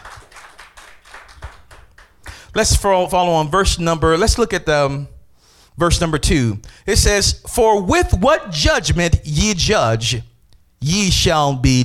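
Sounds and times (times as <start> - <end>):
audience clapping in rhythm: 0.0 - 2.7
speech: 2.6 - 5.1, 5.8 - 11.8.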